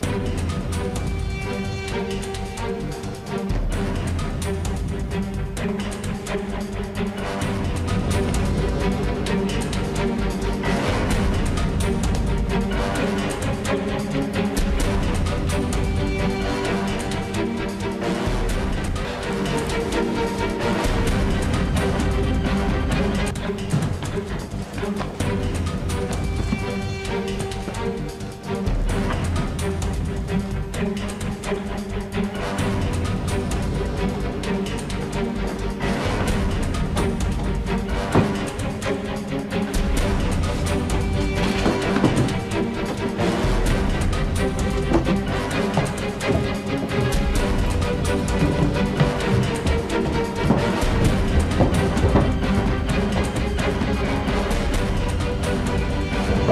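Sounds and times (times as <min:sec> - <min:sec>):
action music: 0:00.0 - 0:56.5.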